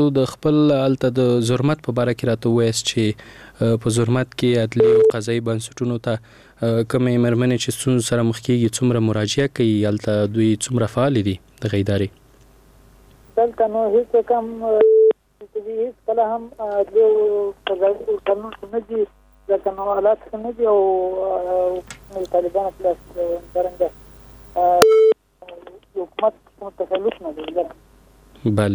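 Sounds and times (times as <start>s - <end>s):
speech: 0.0s - 12.2s, 13.4s - 14.9s, 15.6s - 24.0s, 24.6s - 27.8s, 28.4s - 28.7s
telephone line beeps of a caller on a radio call-in show: 4.8s - 5.2s, 24.6s - 25.2s.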